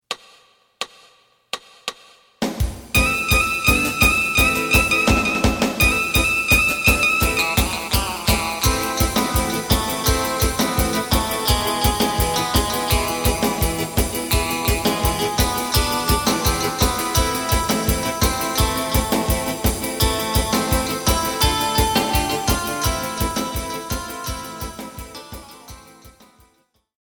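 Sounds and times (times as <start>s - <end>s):
bass: 3.0s - 26.0s.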